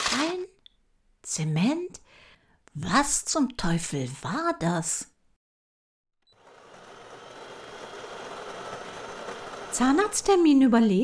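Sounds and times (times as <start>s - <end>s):
speech: 1.3s - 2.0s, 2.8s - 5.1s, 9.8s - 11.0s
coffee machine running: 6.3s - 10.3s.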